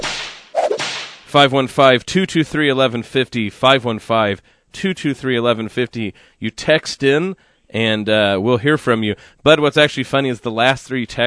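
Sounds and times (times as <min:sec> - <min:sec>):
whip crack sound effect: 0:00.0 - 0:01.3
speech: 0:01.3 - 0:11.2.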